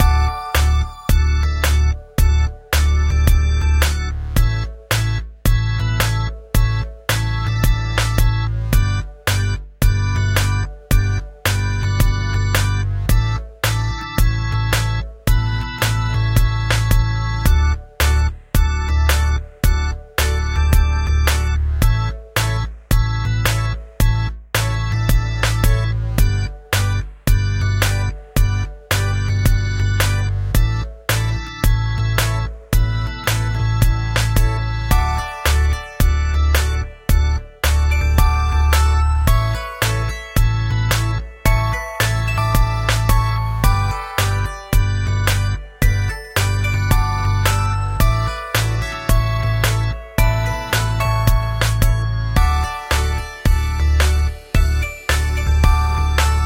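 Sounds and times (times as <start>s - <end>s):
main synth melody: 0.0s - 56.4s.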